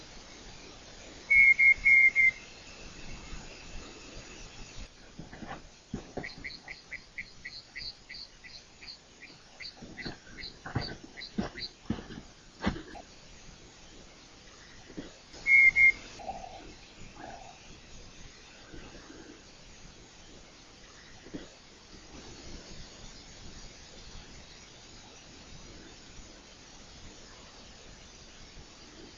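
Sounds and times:
night parrot piping whistles: 1.3s - 2.4s, 15.4s - 16.0s
soft repeated chirping: 1.3s - 4.8s, 6.0s - 12.1s, 13.7s - 17.6s.

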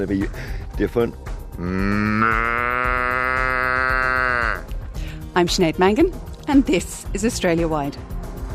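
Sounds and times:
speech: 0.0s - 2.8s, 5.4s - 8.1s
person imitating a moo-like call to summon cows: 1.6s - 4.7s.

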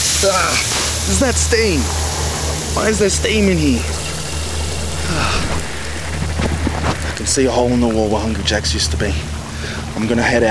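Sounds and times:
water gushing from the ceiling: 0.0s - 8.6s
speech: 0.2s - 2.0s, 2.8s - 4.0s, 7.2s - 9.4s, 10.0s - 10.5s.

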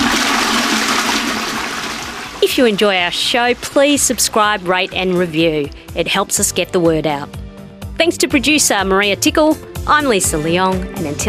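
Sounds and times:
toilet flushing: 0.0s - 5.8s
speech: 2.4s - 7.4s, 8.0s - 11.2s.

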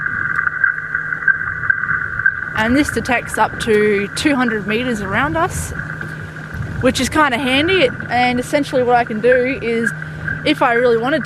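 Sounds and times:
fish tag pings on tracking receiver: 0.0s - 11.2s
speech: 2.6s - 5.9s, 6.8s - 11.2s.

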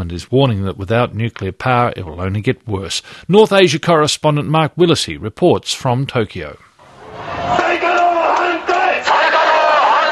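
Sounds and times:
speech: 0.0s - 6.7s
protesters chanting against nuclear plants in the rain in Tokyo: 7.1s - 10.1s.

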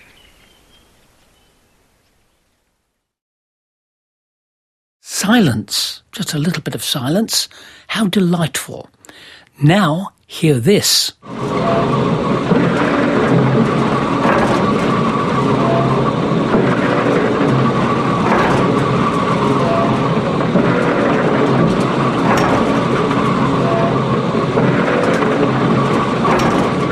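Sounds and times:
speech: 5.3s - 12.7s
oil well pump droning: 11.2s - 26.9s.

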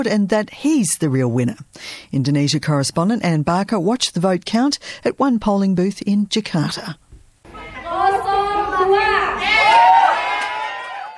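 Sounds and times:
speech: 0.0s - 7.0s
crowd of supporters cheering and shouting at vote count: 7.6s - 11.1s.

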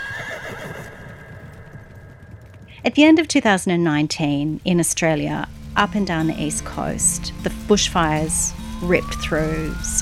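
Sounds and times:
horse whinnying: 0.0s - 2.4s
low horse hoof clopping: 0.0s - 7.2s
speech: 2.8s - 10.0s.

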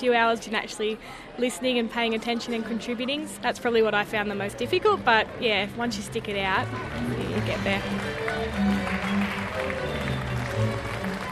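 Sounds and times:
speech: 0.0s - 9.0s
crowd cheering at the AIS Arena: 6.6s - 11.2s.

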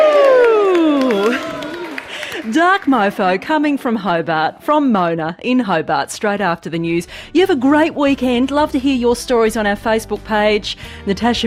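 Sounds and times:
group cheering: 0.0s - 3.8s
speech: 2.6s - 11.4s.

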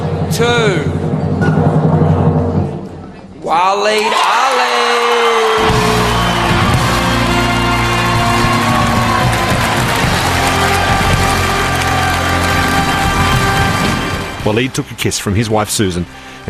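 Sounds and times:
speech: 0.3s - 1.9s, 3.5s - 4.7s, 14.4s - 16.4s
crowd cheering at award announcement: 3.5s - 14.9s.

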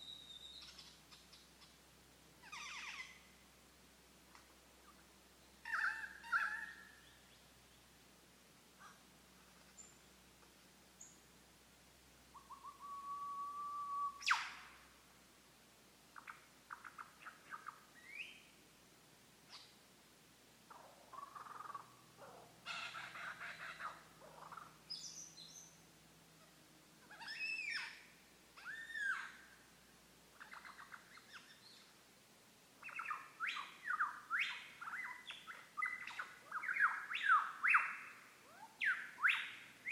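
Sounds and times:
lyrebird: 0.0s - 1.8s, 2.4s - 3.4s, 5.6s - 7.4s, 12.3s - 14.8s, 16.2s - 18.4s, 20.7s - 25.8s, 26.4s - 29.6s, 30.3s - 31.9s, 32.8s - 39.9s.

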